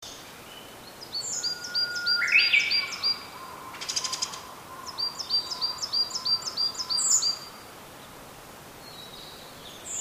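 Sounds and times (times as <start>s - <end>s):
Japanese bush warbler song: 0.1s - 7.6s, 8.8s - 10.0s.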